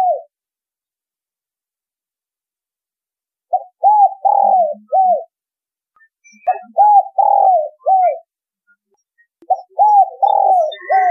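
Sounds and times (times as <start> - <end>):
spotted dove cooing: 0.0 - 0.3, 3.5 - 5.3, 6.4 - 8.3, 9.5 - 11.1.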